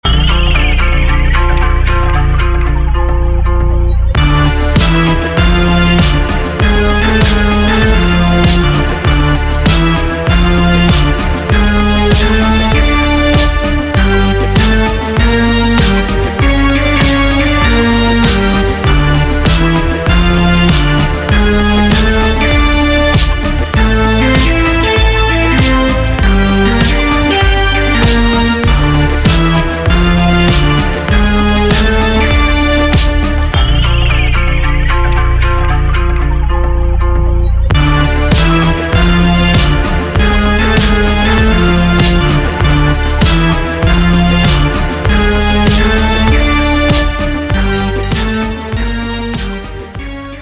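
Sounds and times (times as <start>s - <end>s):
crime blues music: 0.0s - 50.4s.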